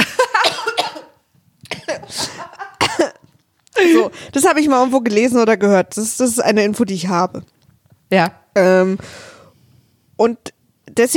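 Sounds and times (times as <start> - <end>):
person coughing after choking on something swallowed: 0.0 - 3.2
speech: 4.0 - 9.3, 10.2 - 11.1.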